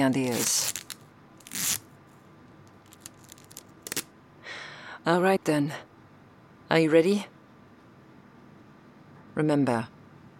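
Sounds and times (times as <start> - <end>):
speech: 0.0 - 0.8, 5.0 - 5.9, 6.7 - 7.3, 9.4 - 10.0
adhesive tape pulled and torn while taping down an injured person: 0.0 - 1.9, 2.7 - 4.1.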